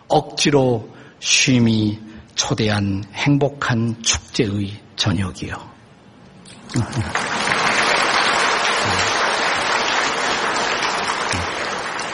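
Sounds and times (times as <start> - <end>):
speech: 0.1 - 5.8, 6.7 - 7.3
audience applause: 6.7 - 12.1.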